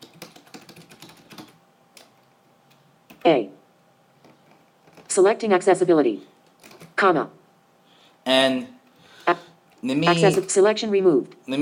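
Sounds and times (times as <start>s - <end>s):
fingers typing on a computer keyboard: 0.0s - 3.3s, 4.2s - 5.1s, 6.4s - 7.0s
speech: 3.2s - 3.6s, 5.2s - 6.4s, 7.0s - 7.4s, 8.2s - 11.6s.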